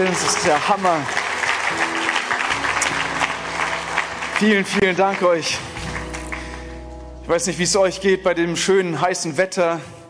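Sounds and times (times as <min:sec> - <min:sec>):
speech: 0:00.0 - 0:01.9, 0:04.4 - 0:05.7, 0:07.3 - 0:10.0
audience applause for the band: 0:00.0 - 0:06.8.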